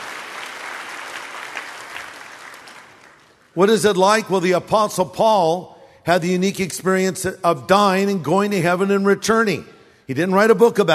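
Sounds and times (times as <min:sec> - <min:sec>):
audience applause: 0:00.0 - 0:03.5
speech: 0:03.6 - 0:10.9.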